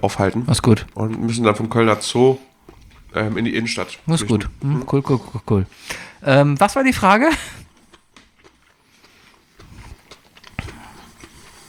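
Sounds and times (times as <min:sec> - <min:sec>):
speech: 0:00.0 - 0:02.5, 0:03.1 - 0:07.6
someone eating a spring roll: 0:00.0 - 0:05.4, 0:07.5 - 0:11.6.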